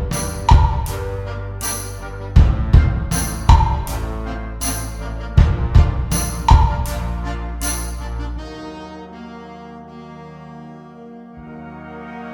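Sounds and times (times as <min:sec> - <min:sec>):
Schlagwerk glockenspiel: 0:00.1 - 0:02.4, 0:03.1 - 0:05.4, 0:06.1 - 0:08.4.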